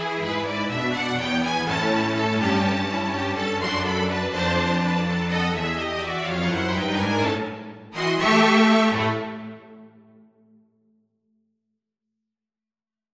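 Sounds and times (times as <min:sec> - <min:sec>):
strings playing a carol: 0:00.0 - 0:10.1.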